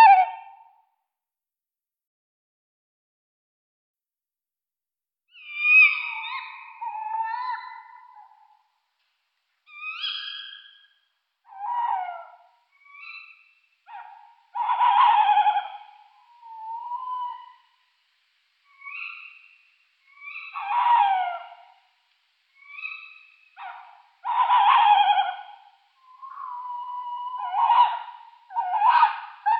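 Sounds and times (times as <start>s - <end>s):
tawny owl hooting in Luxembourg: 0.0s - 0.7s, 5.3s - 8.6s, 9.7s - 18.0s, 18.6s - 21.9s, 22.5s - 29.5s.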